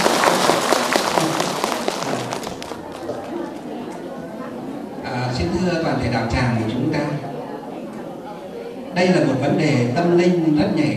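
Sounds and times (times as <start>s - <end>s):
crowd applauding: 0.0s - 3.6s
speech: 5.5s - 7.3s, 9.0s - 10.9s.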